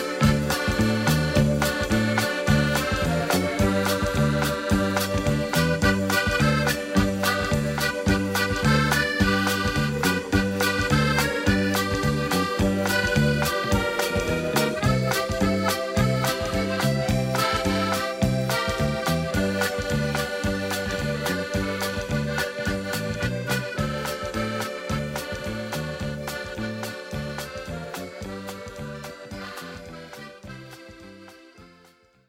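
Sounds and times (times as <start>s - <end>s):
accordion medley in G: 0.0s - 32.2s.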